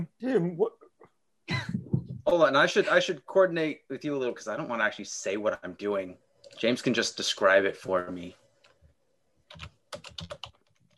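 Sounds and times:
speech: 0.1s - 0.8s, 2.3s - 8.4s, 9.5s - 10.1s
typing on a computer keyboard: 9.5s - 10.9s.

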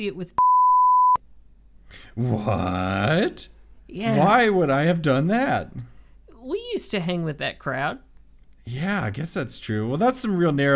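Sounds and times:
speech: 0.0s - 0.5s, 1.9s - 5.9s, 6.8s - 8.1s, 8.7s - 10.7s
censor bleep over a spoken name: 0.4s - 1.2s.

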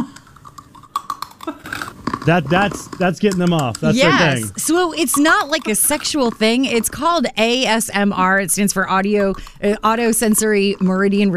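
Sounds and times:
crunching cookies while eating: 0.2s - 4.5s
speech: 2.3s - 11.3s.

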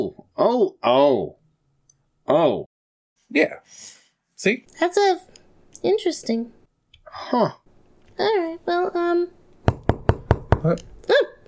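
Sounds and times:
speech: 0.0s - 1.4s, 2.3s - 2.7s, 3.3s - 7.6s, 8.2s - 9.4s, 10.6s - 11.4s
knocking on a door: 9.6s - 10.8s.

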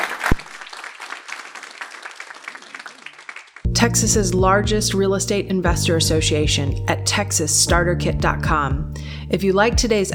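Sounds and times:
audience applause: 0.0s - 3.7s
speech: 3.8s - 10.1s.

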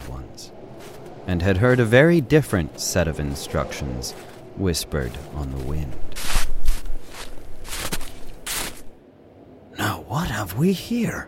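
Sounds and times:
boots crunching in snow: 0.0s - 8.9s
speech: 1.3s - 6.1s, 10.2s - 11.2s.

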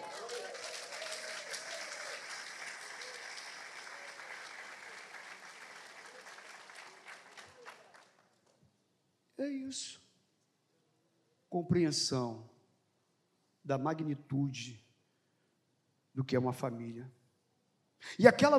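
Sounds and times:
applause: 0.0s - 8.6s
speech: 9.4s - 10.0s, 11.5s - 12.5s, 13.7s - 14.8s, 16.2s - 17.2s, 18.0s - 18.5s.

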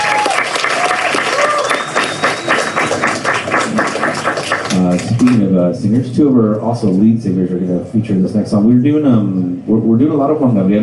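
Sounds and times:
faint whistles and cheers: 0.0s - 3.3s
crowd applauding: 0.0s - 5.5s
speech: 4.8s - 10.8s.

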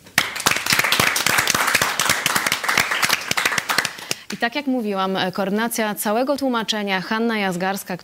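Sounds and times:
audience applause: 0.0s - 4.3s
speech: 4.3s - 8.0s.

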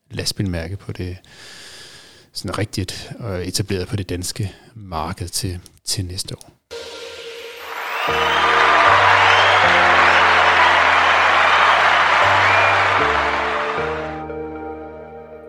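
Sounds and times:
speech: 0.2s - 1.7s, 2.4s - 6.6s
stepping musical chord pattern jingle: 6.7s - 10.5s
crowd applause: 7.3s - 14.2s.

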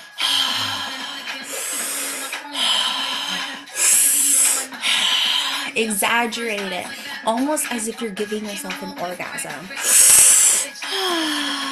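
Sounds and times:
loud breaths through an open mouth in a breathwork session: 0.0s - 5.8s, 9.8s - 11.7s
speech: 5.8s - 10.0s.

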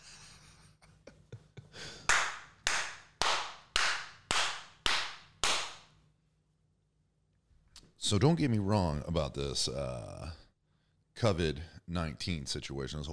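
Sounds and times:
hand claps: 2.0s - 6.0s
speech: 8.1s - 10.4s, 11.2s - 13.1s.

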